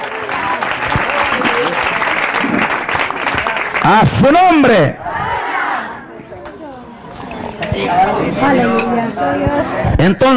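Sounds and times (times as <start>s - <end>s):
audience applauding: 0.0s - 4.2s
speech: 3.9s - 5.0s, 7.8s - 10.3s.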